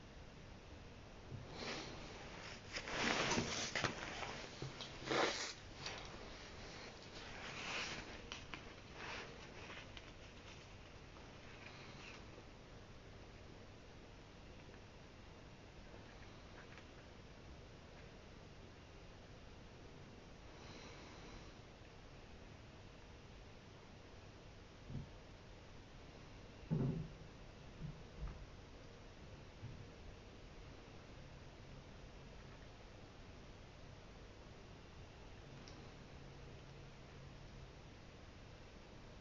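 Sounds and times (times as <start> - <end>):
low steady hiss: 0.0 - 39.1
faint scratching: 1.5 - 12.3
papery rustles and book handling: 2.2 - 11.0.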